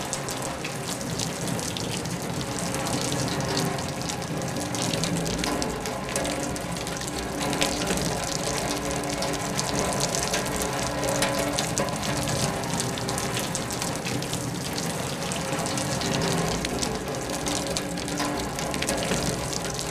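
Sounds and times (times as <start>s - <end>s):
steady heavy rain: 0.0s - 19.8s.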